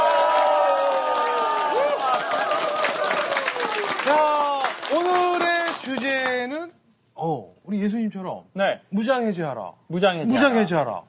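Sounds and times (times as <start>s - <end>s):
crowd cheering: 0.0s - 6.0s
speech: 4.1s - 5.3s, 7.7s - 11.0s.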